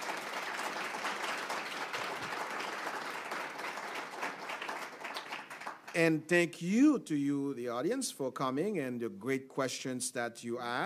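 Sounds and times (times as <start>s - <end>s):
audience applause at a public discussion event: 0.0s - 6.0s
speech: 6.0s - 10.8s.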